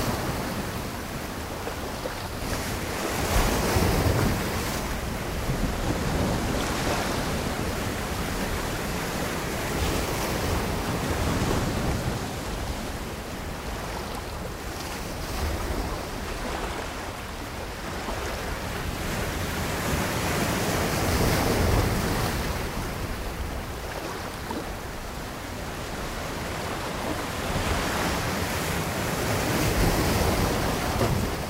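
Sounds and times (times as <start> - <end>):
ocean ambience: 0.0 - 31.4.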